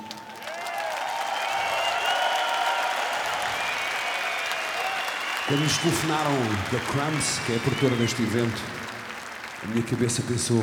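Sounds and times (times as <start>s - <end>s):
concert audience applause in an arena: 0.0s - 10.6s
speech: 5.5s - 8.8s, 9.6s - 10.6s.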